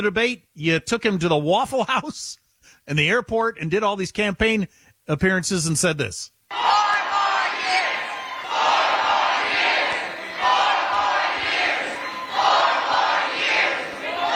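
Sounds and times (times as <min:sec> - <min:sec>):
speech: 0:00.0 - 0:06.7
large crowd chanting: 0:06.5 - 0:14.3.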